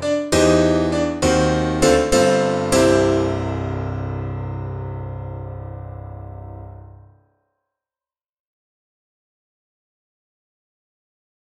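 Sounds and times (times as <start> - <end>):
bright gospel piano: 0.0 - 6.9.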